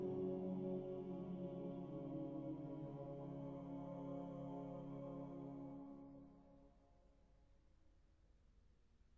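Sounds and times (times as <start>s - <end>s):
chorale sung by four voices: 0.0s - 6.4s.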